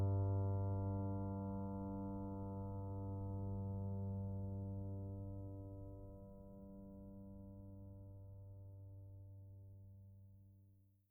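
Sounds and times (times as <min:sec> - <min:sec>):
quiet piano: 0:00.0 - 0:11.0.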